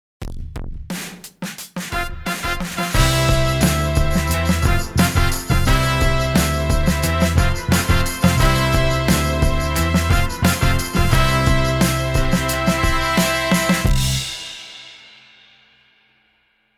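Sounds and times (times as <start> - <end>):
horns: 1.9 - 14.9.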